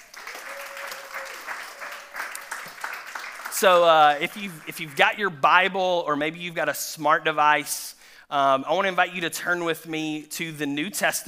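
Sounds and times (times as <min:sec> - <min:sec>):
audience applause: 0:00.0 - 0:05.0
speech: 0:03.6 - 0:11.2.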